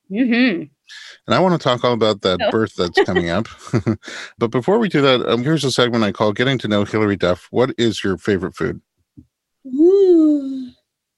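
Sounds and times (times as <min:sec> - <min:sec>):
speech: 0:00.1 - 0:10.6
laughter: 0:01.4 - 0:07.9
yawn: 0:09.7 - 0:10.8.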